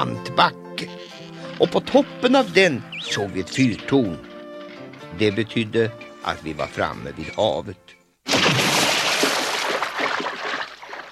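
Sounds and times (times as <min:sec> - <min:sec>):
speech: 0:00.0 - 0:04.3, 0:05.1 - 0:07.9
big splash into water: 0:08.3 - 0:11.1.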